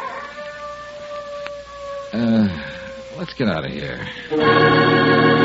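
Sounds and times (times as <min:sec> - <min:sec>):
dog howling: 0:00.0 - 0:03.2
speech: 0:02.1 - 0:05.3.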